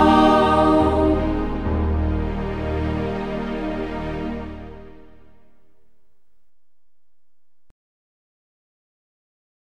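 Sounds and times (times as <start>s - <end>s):
choir singing in Burgberg local dialect: 0.0s - 5.2s.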